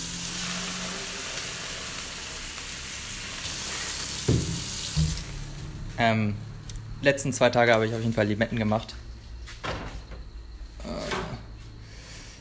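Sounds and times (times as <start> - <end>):
water tap running: 0.0 - 5.8
speech: 6.0 - 9.0.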